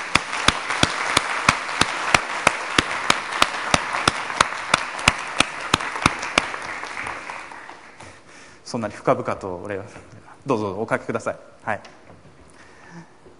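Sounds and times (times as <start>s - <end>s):
audience applause welcoming guests: 0.0s - 8.0s
speech: 8.7s - 12.0s.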